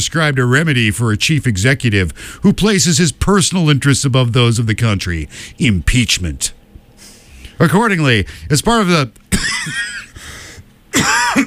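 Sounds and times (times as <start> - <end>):
speech: 0.0 - 6.6, 7.6 - 10.0, 11.0 - 11.4
person coughing during a formal statement: 9.3 - 10.2, 10.9 - 11.4.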